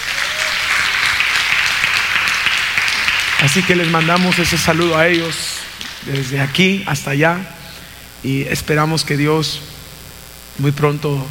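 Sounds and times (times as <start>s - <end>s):
church audience applause: 0.0s - 6.8s
speech: 3.4s - 7.6s, 8.2s - 9.7s, 10.6s - 11.2s.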